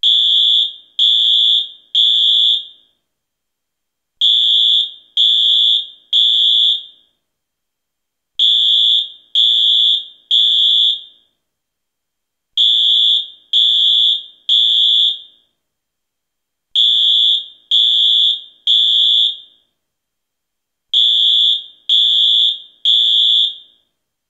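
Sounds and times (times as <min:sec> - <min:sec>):
fire alarm: 0:00.0 - 0:03.0, 0:04.2 - 0:07.2, 0:08.4 - 0:11.4, 0:12.6 - 0:15.6, 0:16.8 - 0:19.8, 0:20.9 - 0:24.0.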